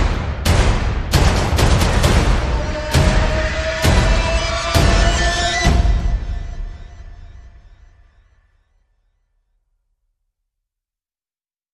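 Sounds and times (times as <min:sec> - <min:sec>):
percussion: 0:00.0 - 0:08.0
electronic pulses: 0:02.1 - 0:08.6.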